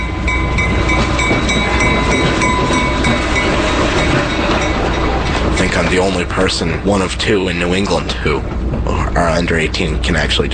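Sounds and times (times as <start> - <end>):
thin high metallic ringing tones: 0.0 - 6.4
train rumbling on rails: 0.0 - 10.5
train wheels clickety-clack: 0.0 - 10.5
speech: 5.9 - 10.5.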